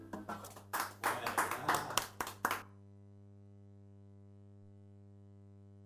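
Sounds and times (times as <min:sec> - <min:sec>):
applause: 0:00.2 - 0:02.6.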